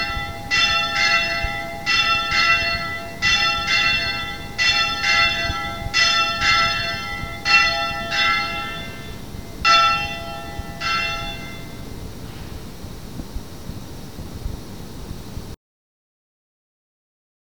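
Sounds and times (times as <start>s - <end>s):
church bells ringing for a said Mass: 0.0s - 12.8s.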